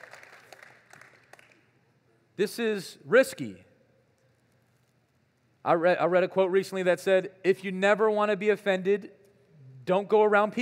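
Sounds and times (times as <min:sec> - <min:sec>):
audience clapping: 0:00.0 - 0:01.8
speech: 0:02.4 - 0:03.7, 0:05.6 - 0:09.2, 0:09.9 - 0:10.5.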